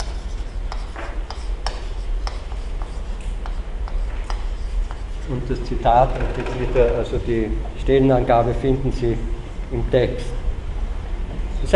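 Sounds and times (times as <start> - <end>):
pen writing a name by hand: 0.0 - 5.2
low steady hum: 0.0 - 11.7
speech: 5.3 - 10.4.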